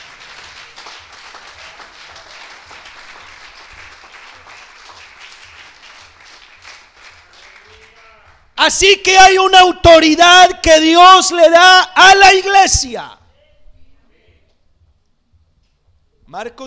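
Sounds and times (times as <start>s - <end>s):
audience applause: 0.0s - 8.4s
speech: 8.6s - 13.2s, 16.4s - 16.6s.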